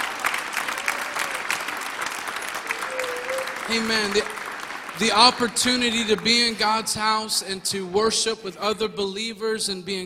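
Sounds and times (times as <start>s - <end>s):
audience clapping hands: 0.0s - 7.5s
speech: 3.7s - 4.4s, 5.0s - 10.0s.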